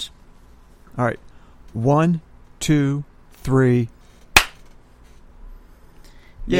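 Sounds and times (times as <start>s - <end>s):
speech: 1.0s - 4.0s
synchronized hand clap: 4.4s - 4.6s.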